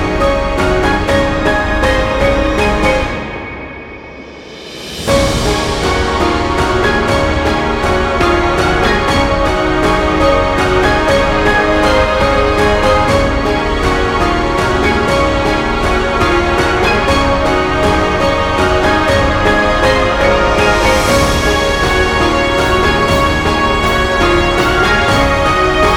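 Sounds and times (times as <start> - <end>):
heroic cinematic music: 0.0 - 25.9.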